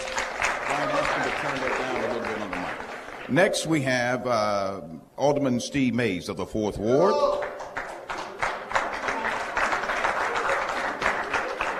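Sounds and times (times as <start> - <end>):
audience applause: 0.0 - 3.4, 7.4 - 11.7
speech: 0.8 - 7.5.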